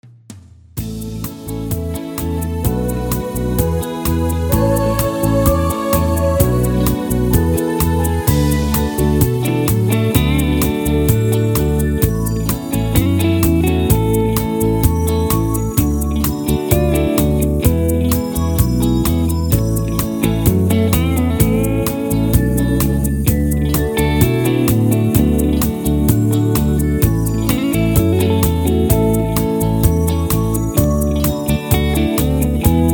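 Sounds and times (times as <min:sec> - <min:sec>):
instrumental music: 0:00.8 - 0:32.9
background vocals: 0:02.7 - 0:09.2.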